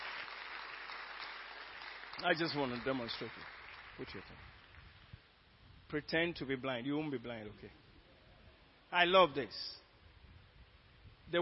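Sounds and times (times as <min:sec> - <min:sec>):
audience clapping hands: 0:00.0 - 0:04.8
speech: 0:02.2 - 0:04.6, 0:05.9 - 0:07.8, 0:08.9 - 0:09.8.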